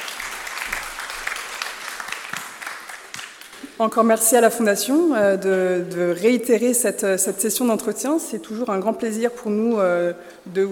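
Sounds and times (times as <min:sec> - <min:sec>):
audience applause: 0:00.0 - 0:03.7
speech: 0:03.8 - 0:10.7.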